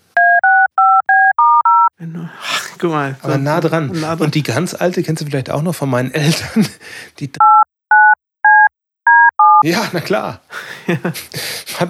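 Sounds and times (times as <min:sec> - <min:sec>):
telephone keypad dialing tones: 0:00.2 - 0:01.9, 0:07.4 - 0:09.6
speech: 0:02.8 - 0:07.6, 0:09.6 - 0:11.8
laughter: 0:09.6 - 0:11.4.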